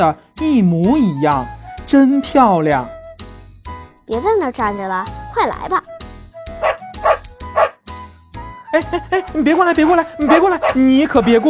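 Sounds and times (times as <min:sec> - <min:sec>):
speech: 0:00.0 - 0:03.0, 0:04.1 - 0:06.0, 0:08.7 - 0:11.4
small dog barking: 0:06.6 - 0:07.8, 0:10.3 - 0:10.8.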